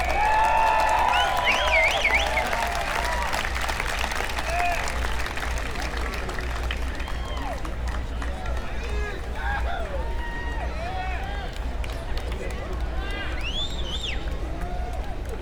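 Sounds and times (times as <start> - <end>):
audience applause as performers take the stage: 0.0 - 15.4
shrill whistles: 1.0 - 2.8, 13.4 - 14.4.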